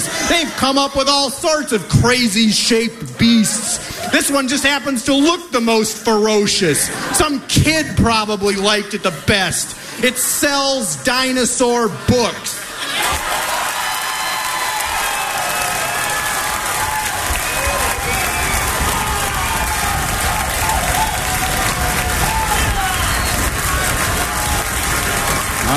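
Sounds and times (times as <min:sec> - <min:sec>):
speech: 0:00.4 - 0:13.1
live show audience clapping and cheering: 0:12.8 - 0:25.7.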